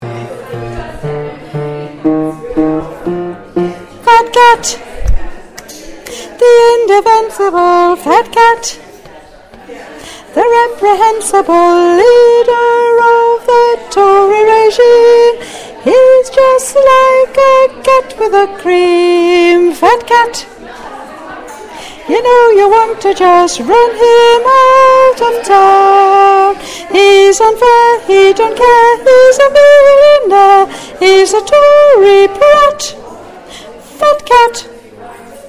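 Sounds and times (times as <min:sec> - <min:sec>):
soprano singing: 0:00.0 - 0:04.8, 0:06.4 - 0:08.8, 0:10.4 - 0:20.4, 0:22.1 - 0:33.0.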